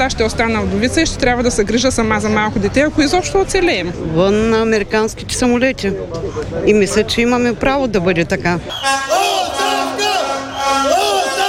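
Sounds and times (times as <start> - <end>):
speech: 0.0 - 9.2
protest crowd chanting resignation: 8.7 - 11.4.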